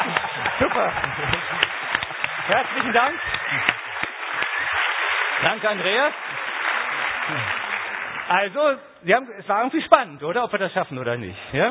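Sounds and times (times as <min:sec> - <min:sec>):
laughter: 0:00.0 - 0:01.8
crowd applauding: 0:00.0 - 0:08.8
speech: 0:00.6 - 0:01.4, 0:02.5 - 0:03.8, 0:05.4 - 0:06.4, 0:07.3 - 0:07.6, 0:08.3 - 0:11.6.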